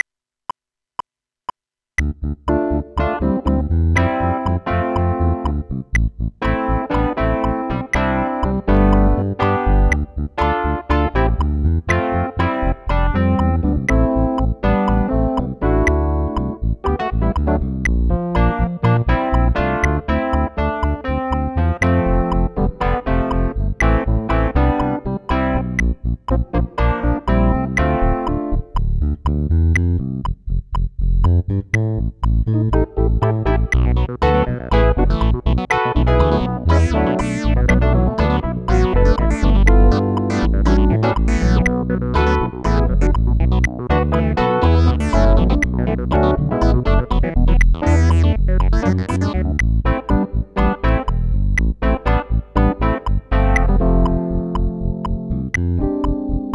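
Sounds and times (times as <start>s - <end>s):
improvised music: 2.0s - 56.5s.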